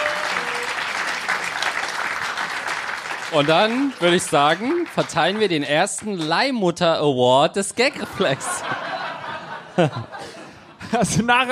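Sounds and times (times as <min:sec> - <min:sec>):
audience applause: 0:00.0 - 0:06.5
speech: 0:03.3 - 0:08.8, 0:09.8 - 0:10.2, 0:10.9 - 0:11.5
laughter: 0:07.9 - 0:11.3.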